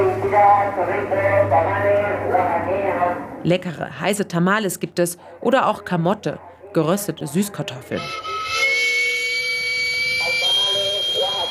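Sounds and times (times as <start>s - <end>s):
speech: 0.3s - 8.7s
steam vent whistle of a small street food cart: 8.0s - 11.5s.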